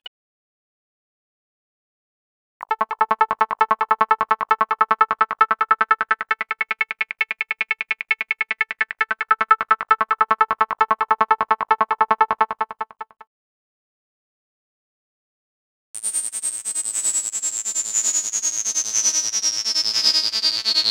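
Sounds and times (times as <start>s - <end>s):
sound effects: 2.6s - 13.2s
synth loops: 2.6s - 13.2s.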